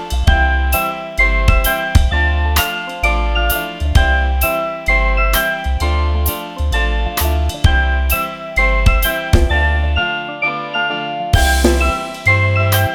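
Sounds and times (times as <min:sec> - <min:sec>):
mobile phone bossa ringtone: 0:00.0 - 0:12.9.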